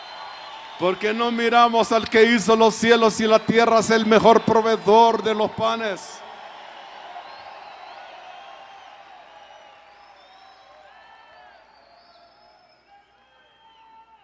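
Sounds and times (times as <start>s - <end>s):
audience shouting hallelujah: 0.0s - 9.4s
speech: 0.8s - 6.2s.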